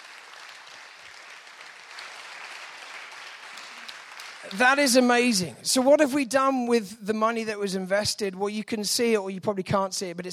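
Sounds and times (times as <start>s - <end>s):
audience applause: 0.0s - 5.0s
speech: 4.4s - 10.3s.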